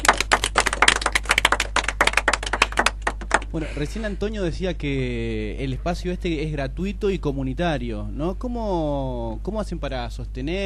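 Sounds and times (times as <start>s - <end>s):
audience applause: 0.0s - 3.6s
speech: 3.5s - 10.6s.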